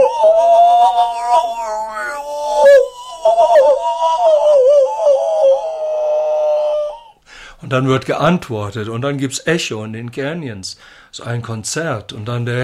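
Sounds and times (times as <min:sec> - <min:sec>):
person imitating coyotes howling: 0:00.0 - 0:07.2
speech: 0:07.7 - 0:12.6.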